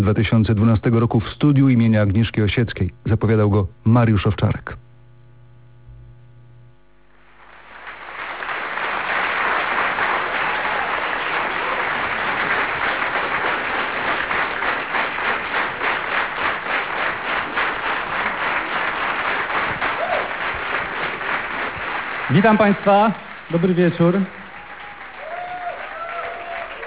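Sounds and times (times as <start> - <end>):
speech: 0.0 - 4.8, 22.4 - 24.4
crowd audience applause: 7.3 - 26.8.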